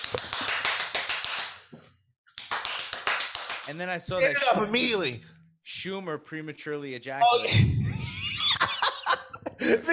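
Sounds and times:
hands clapping: 0.0 - 4.2
speech: 3.7 - 7.8, 9.6 - 9.9
laughter: 7.4 - 9.9.

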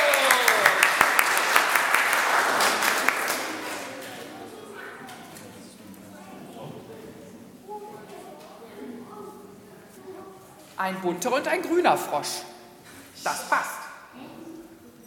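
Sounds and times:
audience applause: 0.0 - 4.6
speech: 10.8 - 12.5, 13.2 - 13.8.

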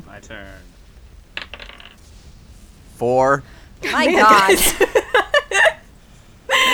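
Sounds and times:
laughter: 0.0 - 0.8, 3.0 - 6.7
speech: 0.2 - 0.8, 3.0 - 5.0
twenty-sided die clattering across a tabletop: 1.3 - 2.2.

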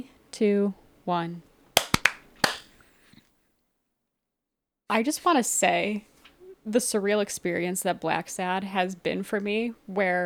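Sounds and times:
speech: 0.4 - 1.5, 4.9 - 10.2
single hand clap for audio sync: 1.8 - 2.8.

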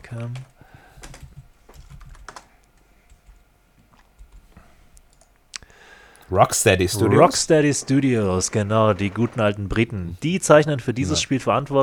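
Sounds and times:
speech: 0.1 - 0.6, 6.3 - 11.8
typing on a computer keyboard to run a web search: 0.3 - 3.4, 4.2 - 5.4.

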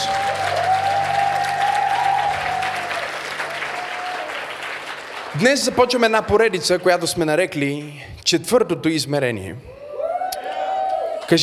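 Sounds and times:
audience applause: 0.0 - 7.3
speech: 5.4 - 9.8, 11.3 - 11.4.

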